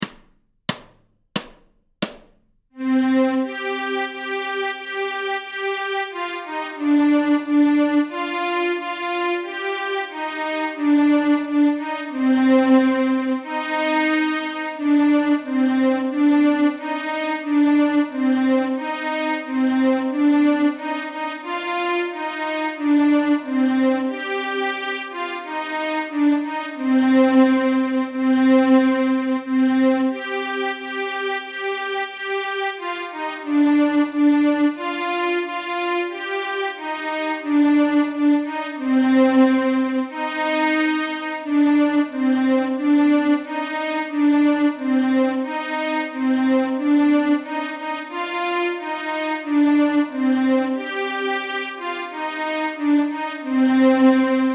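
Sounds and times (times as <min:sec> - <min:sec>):
string ensemble in C minor: 0:02.8 - 0:54.5
violin melody in C minor: 0:02.8 - 0:54.5.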